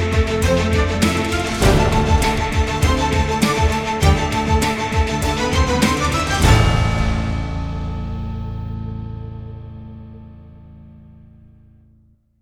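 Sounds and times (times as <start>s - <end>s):
news theme demo melody: 0.0s - 9.6s.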